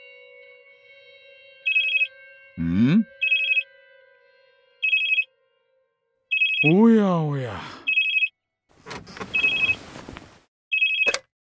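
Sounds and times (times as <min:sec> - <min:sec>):
telephone ringing in short trilling bursts: 0:01.7 - 0:02.1, 0:03.2 - 0:03.6, 0:04.8 - 0:05.2, 0:06.3 - 0:06.8, 0:07.9 - 0:08.3, 0:09.3 - 0:09.8, 0:10.7 - 0:11.3
speech: 0:02.6 - 0:03.1, 0:06.6 - 0:07.6.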